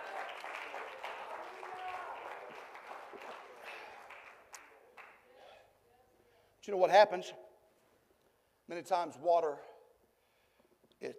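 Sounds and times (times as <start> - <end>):
audience clapping hands: 0.0 - 5.3
speech: 6.6 - 7.5, 8.7 - 9.7, 11.0 - 11.1.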